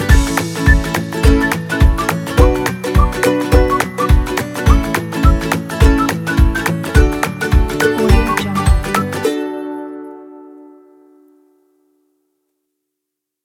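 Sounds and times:
music kit: 0.1s - 9.2s.

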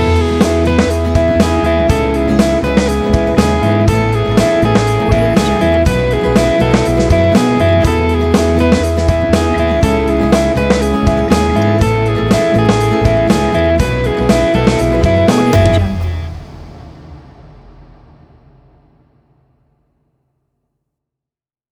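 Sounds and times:
corporate pop rock drive music: 0.0s - 16.6s.

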